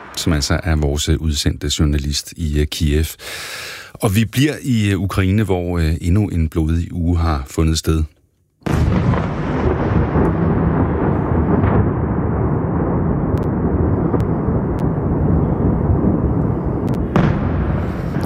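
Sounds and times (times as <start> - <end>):
rumbling blasts of Russian attacks on Kyiv at night: 0.0 - 2.2, 8.7 - 18.2
speech: 0.2 - 8.9.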